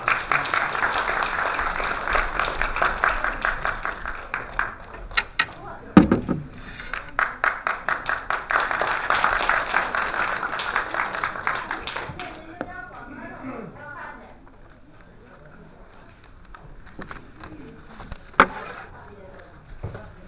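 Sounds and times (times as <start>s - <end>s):
audience applause: 0.0s - 5.7s, 6.8s - 12.6s.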